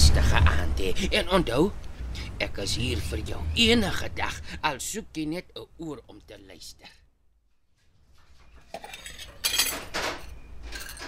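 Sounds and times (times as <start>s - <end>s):
speech: 0.8s - 7.0s, 8.7s - 9.1s
dishes and cutlery clattering in a sink: 8.6s - 11.0s.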